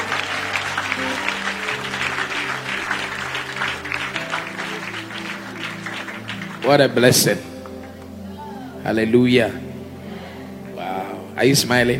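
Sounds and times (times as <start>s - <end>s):
audience applause: 0.0s - 8.2s
sustained low musical tone: 0.0s - 11.9s
speech: 6.7s - 7.5s, 8.8s - 9.7s, 11.4s - 11.9s.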